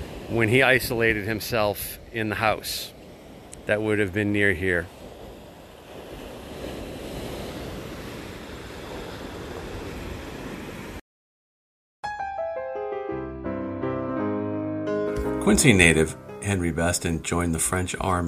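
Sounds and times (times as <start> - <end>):
ocean waves breaking on the shore: 0.0 - 11.0, 15.1 - 18.2
speech: 0.3 - 3.0, 3.7 - 5.0, 15.4 - 18.2
melodic instrumental music: 12.0 - 17.0.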